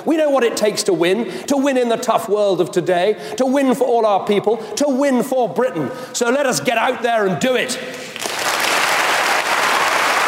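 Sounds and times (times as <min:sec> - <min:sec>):
speech: 0:00.0 - 0:08.1
crowd applauding David Cameron after his speech: 0:08.1 - 0:10.2.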